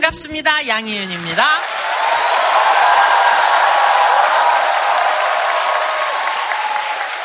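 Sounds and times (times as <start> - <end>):
speech: 0.1 - 1.7
audience applause: 1.0 - 7.1.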